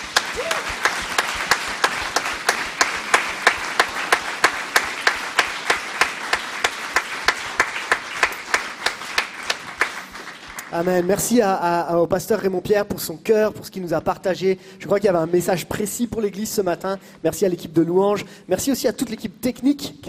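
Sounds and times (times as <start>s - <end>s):
audience applauding: 0.0s - 11.3s
speech: 10.8s - 20.0s.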